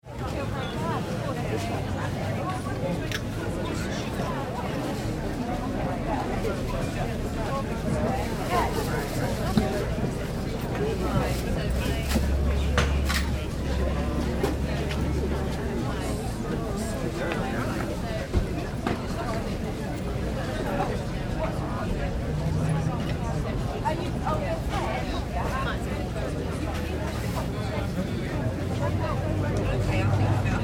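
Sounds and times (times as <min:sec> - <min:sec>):
crowd chatter at a town market: 0:00.0 - 0:30.6
town market activity: 0:00.0 - 0:30.6.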